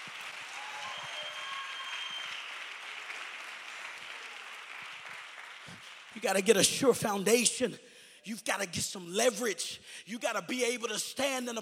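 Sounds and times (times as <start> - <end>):
audience clapping hands: 0.0 - 7.2
speech: 6.2 - 11.5.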